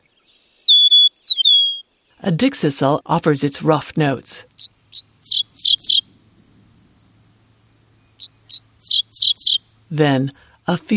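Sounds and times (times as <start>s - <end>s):
Eastern Meadowlark whistled song: 0.0s - 2.2s, 4.5s - 6.4s, 7.8s - 9.9s
speech: 2.2s - 5.4s, 9.9s - 10.9s.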